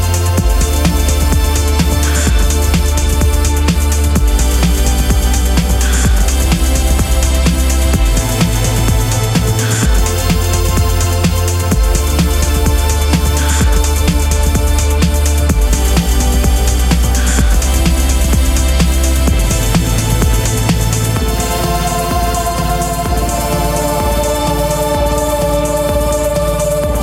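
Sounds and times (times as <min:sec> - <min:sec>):
string beat: 0:00.0 - 0:27.0.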